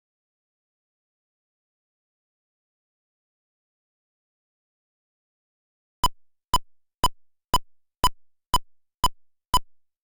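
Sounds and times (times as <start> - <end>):
metronome click count-in at 120 BPM: 6.0 - 9.8.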